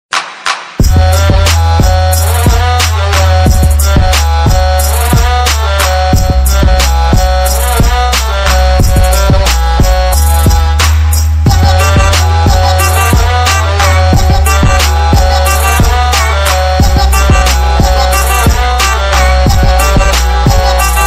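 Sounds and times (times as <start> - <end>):
ringtone: 0.8 - 10.9, 11.5 - 21.0.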